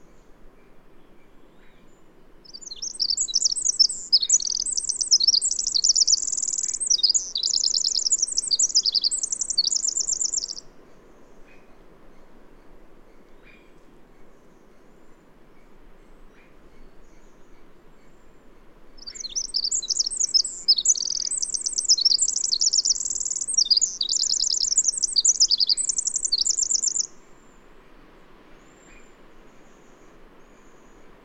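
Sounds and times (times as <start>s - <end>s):
low steady hiss: 0.0s - 31.2s
bird singing trills: 2.5s - 10.6s, 19.0s - 27.2s.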